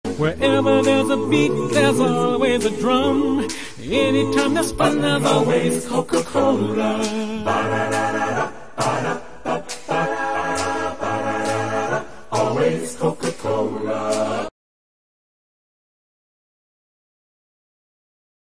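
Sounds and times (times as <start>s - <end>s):
a cappella singing: 0.1s - 14.5s.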